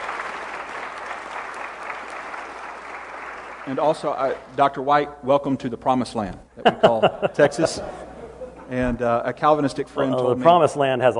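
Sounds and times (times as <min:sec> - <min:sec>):
audience applauding an event crew: 0:00.0 - 0:04.6
speech: 0:03.6 - 0:08.0, 0:08.7 - 0:11.1
laughter: 0:06.6 - 0:08.9.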